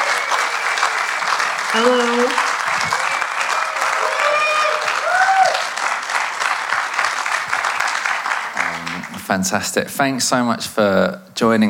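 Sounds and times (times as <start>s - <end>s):
audience applause and cheering welcoming a poet: 0.0s - 9.7s
speech: 1.7s - 3.0s, 9.3s - 11.6s
whistles and whoops: 2.7s - 5.7s.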